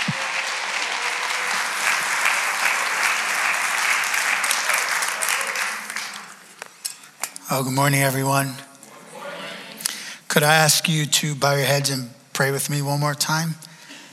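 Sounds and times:
church congregation applauding a speaker: 0.0 - 6.6
speech: 7.5 - 8.7, 10.4 - 13.7.

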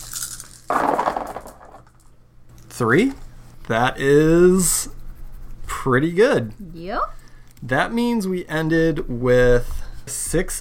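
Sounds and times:
plastic dice rattling down a dice tower: 0.0 - 2.2
speech: 2.8 - 5.0, 5.8 - 10.6.

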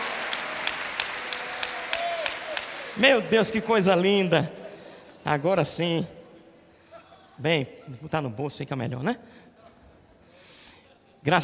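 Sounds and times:
crowd applause: 0.0 - 3.7
speech: 3.0 - 4.6, 5.2 - 6.2, 7.4 - 9.4, 11.2 - 11.4.

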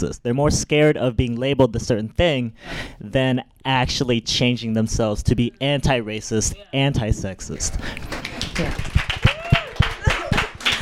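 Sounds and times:
speech: 0.0 - 9.0
clapping: 8.0 - 10.8.

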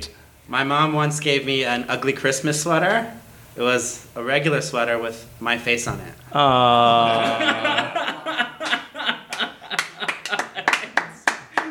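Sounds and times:
speech: 0.5 - 8.0
audience chuckles and laughter: 7.0 - 11.1
small audience clapping: 8.6 - 11.6.

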